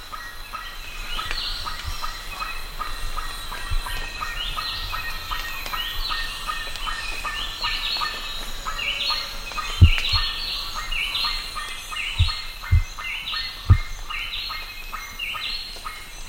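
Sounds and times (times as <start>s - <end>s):
bird calling: 0.1s - 16.1s
low background rumble: 7.5s - 14.0s
dull low thumps: 9.8s - 10.3s, 12.2s - 12.9s.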